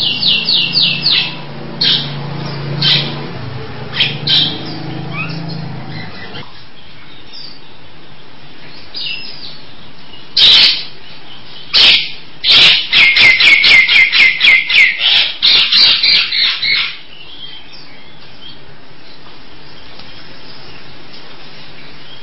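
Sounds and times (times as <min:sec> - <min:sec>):
Nias hill myna giving harsh rasping calls: 0:00.0 - 0:06.5, 0:10.4 - 0:11.0, 0:11.7 - 0:17.8.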